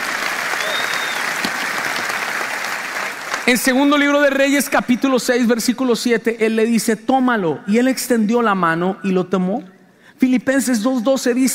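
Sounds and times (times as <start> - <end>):
audience applause: 0.0 - 3.7
speech: 3.5 - 11.5.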